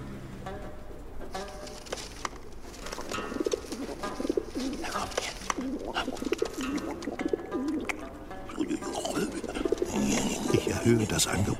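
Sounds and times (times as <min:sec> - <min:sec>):
flock of pigeons cooing on a balcony: 0:01.0 - 0:11.5
pigeon wings flapping: 0:01.4 - 0:11.5
laughter: 0:08.5 - 0:11.5
speech: 0:10.9 - 0:11.5.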